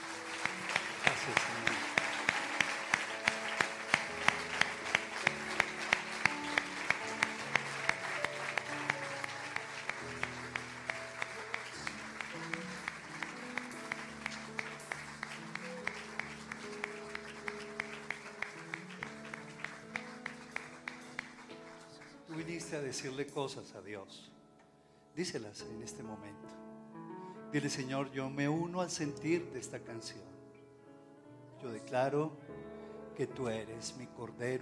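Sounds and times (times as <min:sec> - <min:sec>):
audience applause: 0:00.0 - 0:22.8
speech: 0:22.7 - 0:24.4, 0:25.2 - 0:26.4, 0:27.5 - 0:30.3, 0:31.9 - 0:32.4, 0:33.2 - 0:34.6.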